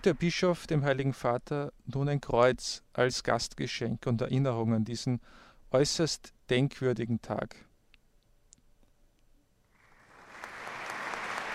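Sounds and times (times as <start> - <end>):
speech: 0.0 - 7.7
audience applause: 9.8 - 11.5.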